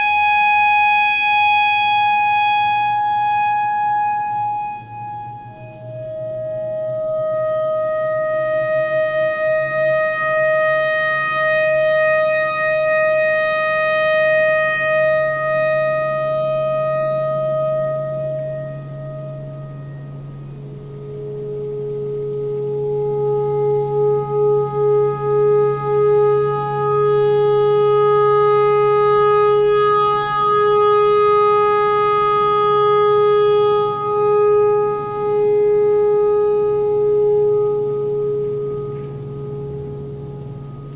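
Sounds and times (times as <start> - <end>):
clarinet notes in E pentatonic: 0.0 - 40.9.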